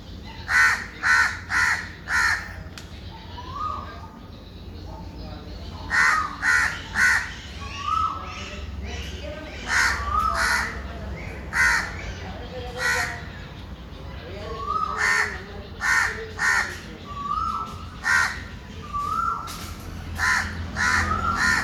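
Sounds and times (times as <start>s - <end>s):
bird giving loud harsh caws: 0.1s - 4.2s, 5.7s - 21.6s.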